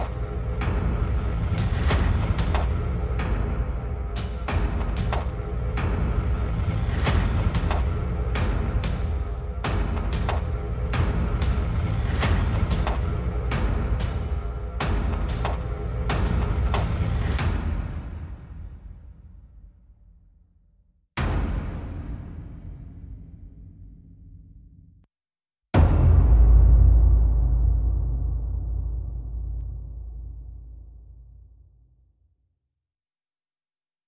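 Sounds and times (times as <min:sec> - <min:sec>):
percussion: 0:00.0 - 0:19.5, 0:21.2 - 0:24.4, 0:25.8 - 0:31.6.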